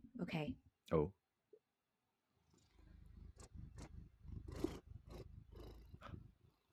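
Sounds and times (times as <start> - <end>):
speech: 0.3 - 1.2
cat purring: 2.4 - 6.7.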